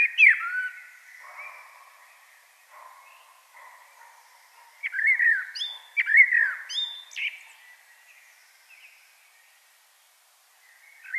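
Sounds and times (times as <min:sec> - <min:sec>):
common blackbird song: 0:00.0 - 0:01.6, 0:04.8 - 0:07.6, 0:10.7 - 0:11.1.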